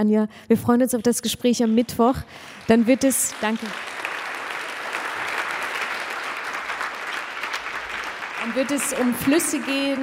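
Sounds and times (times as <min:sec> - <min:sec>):
speech: 0:00.0 - 0:03.9, 0:08.5 - 0:10.0
audience applause: 0:02.4 - 0:10.0.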